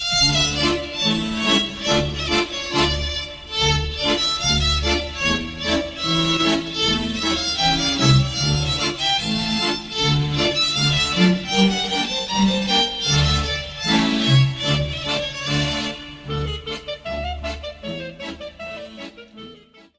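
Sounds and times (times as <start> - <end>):
Polish folk waltz from Lublin: 0.0 - 19.9.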